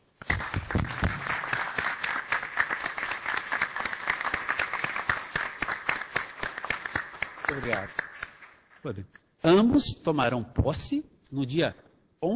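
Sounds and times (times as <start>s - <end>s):
audience applause: 0.2s - 8.4s
speech: 7.6s - 8.0s, 8.8s - 12.3s.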